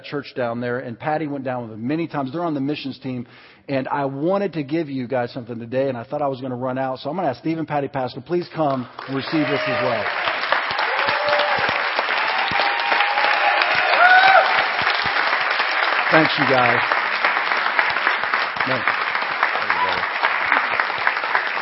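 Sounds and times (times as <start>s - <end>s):
speech: 0.0s - 10.4s, 16.1s - 17.0s, 18.6s - 19.0s
audience applause: 9.0s - 21.6s.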